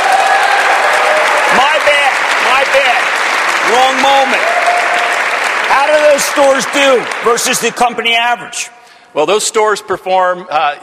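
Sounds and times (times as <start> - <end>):
audience cheering and applauding at a company presentation: 0.0 - 8.1
speech: 3.7 - 4.8, 5.8 - 10.8.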